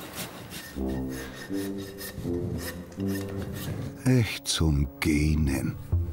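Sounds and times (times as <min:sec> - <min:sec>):
rasp filing a hoof: 0:00.0 - 0:04.0
speech: 0:00.8 - 0:06.0.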